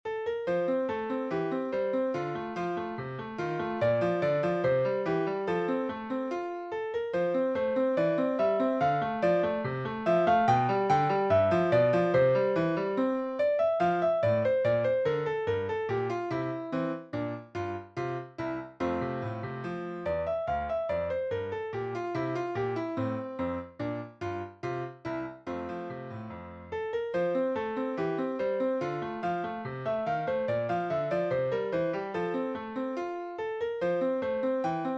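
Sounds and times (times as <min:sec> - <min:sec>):
classical piece: 0:00.1 - 0:34.9.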